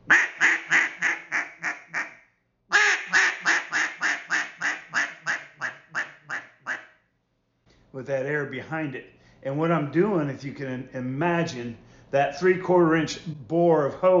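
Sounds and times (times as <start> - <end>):
duck call reed squeaking: 0.1 - 6.9
speech: 8.0 - 14.1.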